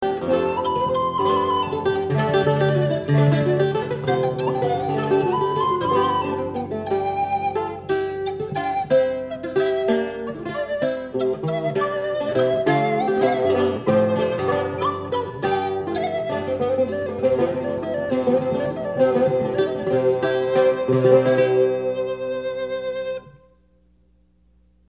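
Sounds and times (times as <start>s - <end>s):
baroque dance piece: 0.0s - 23.3s.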